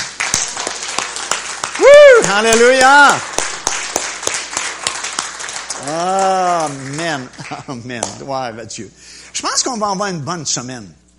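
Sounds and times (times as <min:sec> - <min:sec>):
audience applauding: 0:00.0 - 0:08.2
speech: 0:02.2 - 0:03.3, 0:05.8 - 0:11.0
laughter: 0:05.9 - 0:08.0.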